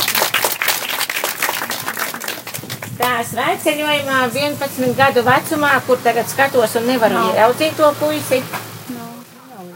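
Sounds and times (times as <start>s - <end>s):
audience applause: 0.0s - 3.0s
speech: 3.2s - 8.7s.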